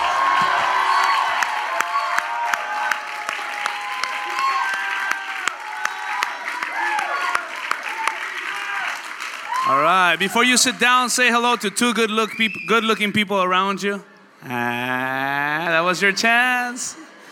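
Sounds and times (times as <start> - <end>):
audience applause: 0.0 - 12.0
speech: 10.2 - 17.0.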